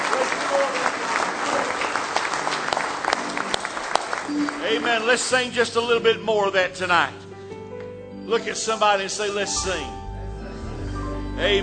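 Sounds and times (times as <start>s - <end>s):
audience clapping hands in praise: 0.0s - 5.5s
speech: 4.7s - 7.3s, 8.3s - 10.0s, 11.4s - 11.6s.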